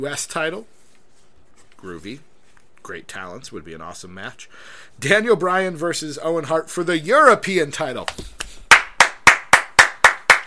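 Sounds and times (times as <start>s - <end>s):
speech: 0.0s - 0.8s, 1.8s - 8.4s
one person clapping hands: 8.0s - 10.4s.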